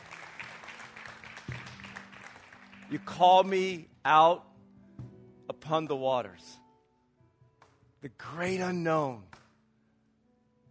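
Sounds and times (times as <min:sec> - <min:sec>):
audience clapping: 0:00.0 - 0:03.5
speech: 0:02.9 - 0:04.5, 0:05.7 - 0:06.6, 0:08.0 - 0:09.3.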